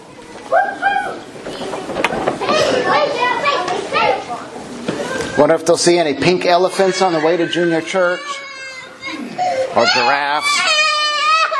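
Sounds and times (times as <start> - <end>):
children chattering while leaving for church: 0.0 - 11.5
speech: 0.5 - 1.5, 5.4 - 8.5, 9.8 - 10.8.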